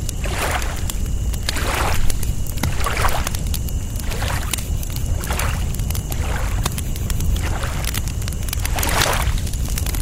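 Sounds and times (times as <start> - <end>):
campfire crackling by the lake: 0.0 - 10.0
crickets chirping: 0.0 - 10.0
lake water lapping against the shore: 0.2 - 3.4, 4.0 - 6.7, 7.4 - 8.0, 8.6 - 9.4.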